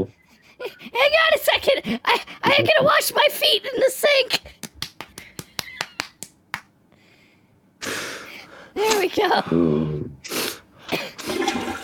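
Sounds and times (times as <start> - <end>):
speech: 0.0 - 4.6, 8.8 - 11.0
toilet flushing: 11.0 - 11.8.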